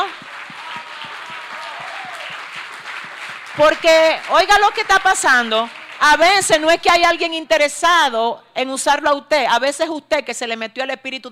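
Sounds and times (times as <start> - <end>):
audience applauding: 0.0 - 6.6
speech: 3.6 - 11.2.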